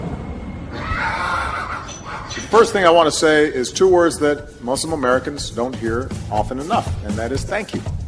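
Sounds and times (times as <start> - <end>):
donkey braying: 0.7 - 2.7
speech: 2.5 - 7.9.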